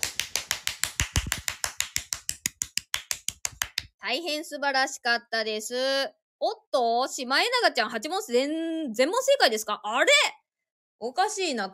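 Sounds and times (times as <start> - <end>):
people clapping: 0.0 - 3.9
speech: 4.0 - 10.4, 11.0 - 11.7.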